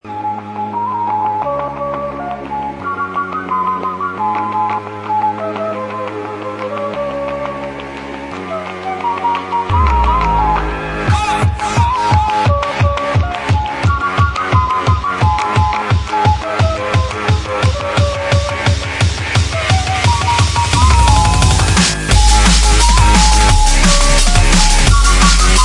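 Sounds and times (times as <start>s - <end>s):
flute tune: 0.0s - 25.6s.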